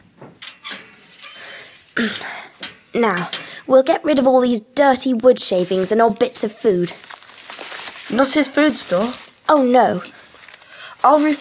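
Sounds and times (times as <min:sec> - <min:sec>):
small wire hamster cage door opening: 0:00.3 - 0:01.6
speech: 0:02.0 - 0:07.1, 0:08.1 - 0:10.2, 0:11.0 - 0:11.3.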